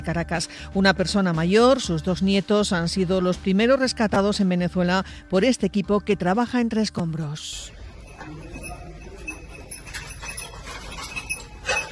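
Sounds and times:
speech: 0.0s - 8.5s
rescue dog's tags jingling as it searches rubble: 8.0s - 11.9s.

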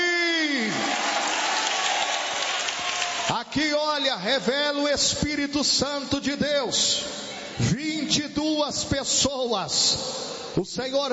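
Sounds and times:
congregation clapping during a church service: 0.5s - 3.8s
speech: 3.3s - 11.1s.

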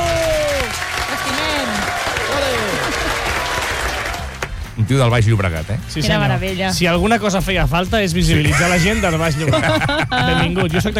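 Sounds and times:
audience applause: 0.0s - 4.6s
laughter: 2.3s - 3.6s, 8.3s - 10.9s
speech: 4.9s - 10.9s.

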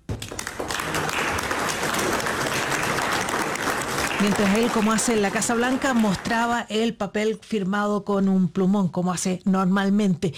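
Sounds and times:
applause: 0.0s - 6.6s
speech: 4.2s - 10.3s.

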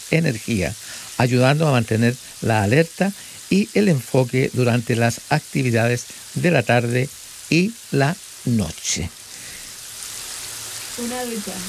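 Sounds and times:
running shower water: 0.0s - 11.6s
speech: 0.1s - 9.2s, 11.0s - 11.6s.

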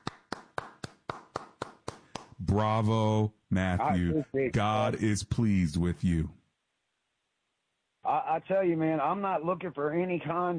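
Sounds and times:
one person clapping hands: 0.0s - 2.4s
speech: 2.4s - 6.4s, 8.2s - 10.5s.

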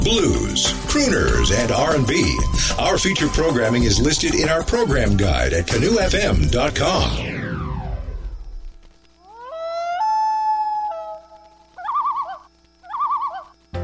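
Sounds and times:
common loon wailing and tremolo calls: 0.0s - 7.0s, 9.0s - 13.7s
speech: 0.1s - 7.4s.

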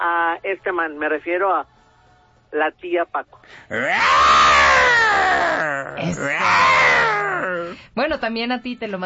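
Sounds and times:
speech: 0.3s - 1.8s, 2.5s - 9.0s
person imitating a lioness roar: 3.7s - 7.8s.

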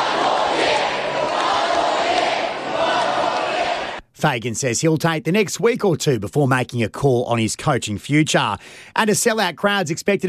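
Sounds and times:
crowd of fans chanting: 0.0s - 4.0s
speech: 4.2s - 10.2s.

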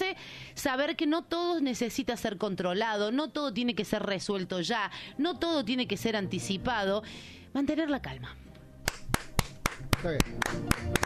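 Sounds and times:
speech: 0.6s - 8.4s, 10.0s - 11.0s
steady rhythmic clapping: 8.8s - 11.0s.

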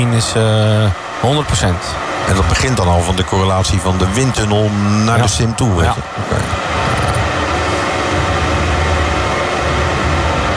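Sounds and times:
helicopter flying over Formula 1 circuit: 0.0s - 10.5s
speech: 0.2s - 7.0s.

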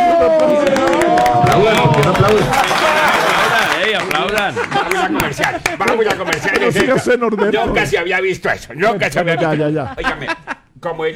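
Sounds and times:
whooping overlapping voices: 0.0s - 5.4s
room full of people clapping: 0.0s - 7.1s
laughter: 0.5s - 8.0s, 9.0s - 11.1s
speech: 2.2s - 2.8s, 4.4s - 11.1s.

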